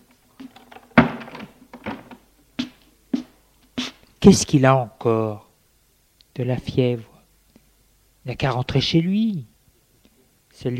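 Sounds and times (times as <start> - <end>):
door closing: 0.4 - 2.2
speech: 4.2 - 5.4, 6.4 - 7.1, 8.2 - 9.5, 10.6 - 10.7.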